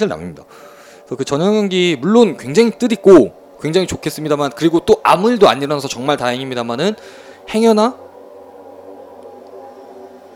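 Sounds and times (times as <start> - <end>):
speech: 0.0 - 8.0
disinfection fogging truck passing by: 0.0 - 10.3.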